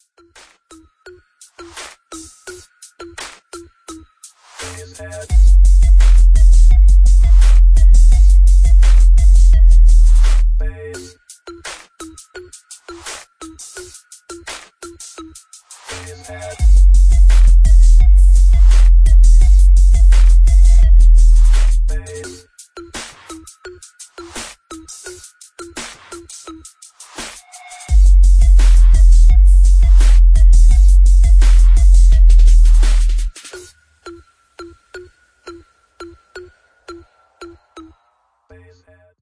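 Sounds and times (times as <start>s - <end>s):
boosted bass: 5.3s - 10.8s, 16.6s - 22.2s, 27.9s - 33.3s.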